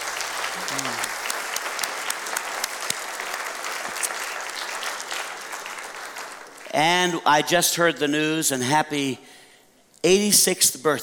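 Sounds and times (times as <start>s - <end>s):
crowd clapping: 0.0s - 7.2s
speech: 6.8s - 9.4s, 10.0s - 11.0s.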